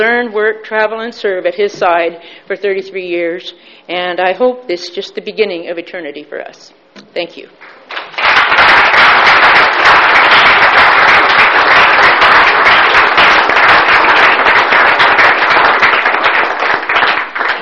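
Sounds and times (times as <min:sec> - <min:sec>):
speech: 0:00.0 - 0:08.0
audience applause: 0:07.6 - 0:17.5.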